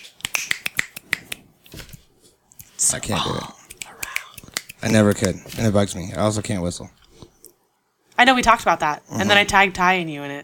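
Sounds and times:
finger snapping: 0.0 - 1.4, 3.7 - 4.8
speech: 2.9 - 3.6, 4.8 - 7.0, 8.2 - 10.4.

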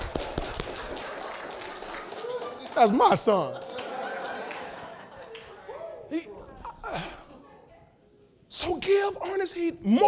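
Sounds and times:
child clapping hands: 0.0 - 3.9
laughter: 0.0 - 7.8
speech: 2.8 - 3.6, 8.6 - 10.0.

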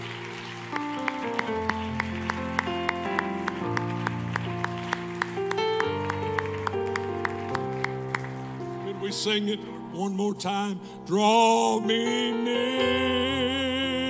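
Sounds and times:
audience clapping hands: 0.0 - 9.6
speech: 9.2 - 13.9.

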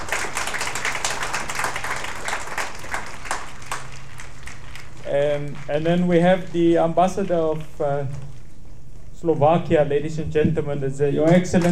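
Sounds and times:
audience applause: 0.0 - 6.2
speech: 5.1 - 8.3, 9.2 - 11.7.

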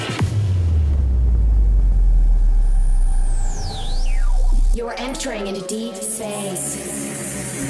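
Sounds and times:
heavy continuous low rumble: 0.2 - 5.5
speech: 5.2 - 7.0.

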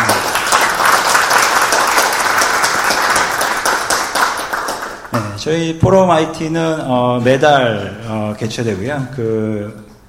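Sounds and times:
crowd applause: 0.0 - 5.2
speech: 5.4 - 9.9.

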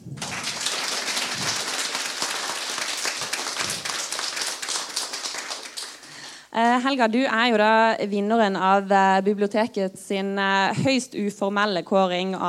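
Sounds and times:
audience applause: 0.0 - 6.2
speech: 6.6 - 12.4.

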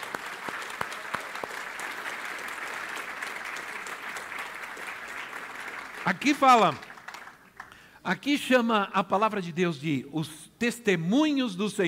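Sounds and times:
audience applause: 0.0 - 7.8
speech: 6.0 - 6.9, 8.0 - 11.8.

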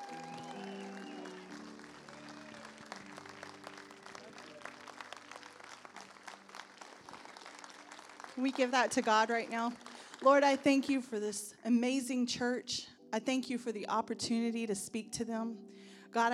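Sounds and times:
church audience clapping: 0.0 - 10.9
speech: 8.4 - 16.3.

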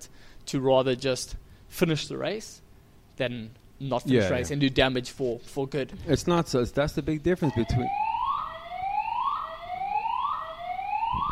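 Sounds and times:
speech: 0.5 - 2.6, 3.2 - 8.1
alarm going off: 7.5 - 11.3.

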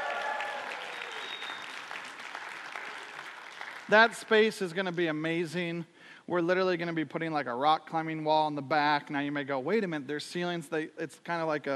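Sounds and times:
crowd cheering: 0.0 - 4.2
crowd clapping: 0.0 - 4.7
speech: 3.9 - 11.7.

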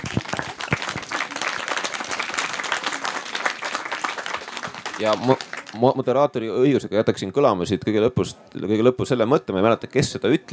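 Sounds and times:
audience applause: 0.0 - 6.2
speech: 5.0 - 10.5.

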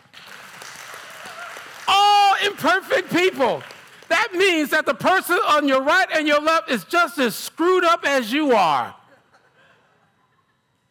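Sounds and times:
audience hand clap: 0.0 - 4.6
speech: 2.4 - 9.0.

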